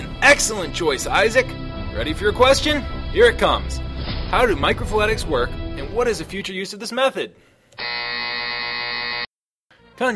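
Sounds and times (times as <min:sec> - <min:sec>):
speech: 0:00.3 - 0:08.0, 0:10.0 - 0:10.1
quiz show buzzer: 0:07.8 - 0:09.3.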